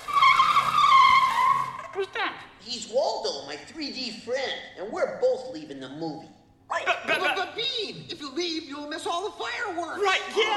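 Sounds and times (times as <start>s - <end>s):
car tires squealing as a car speeds off: 0.0s - 2.0s
speech: 2.3s - 10.5s.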